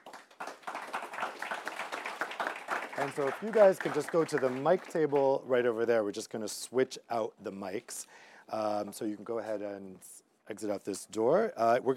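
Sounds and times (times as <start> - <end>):
audience applause: 0.0 - 5.4
speech: 3.0 - 11.9.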